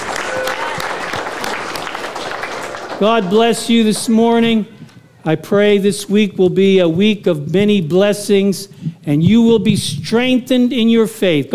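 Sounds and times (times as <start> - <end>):
church congregation clapping as a clap offering: 0.0 - 4.7
crowd noise: 0.0 - 10.2
speech: 3.0 - 11.5.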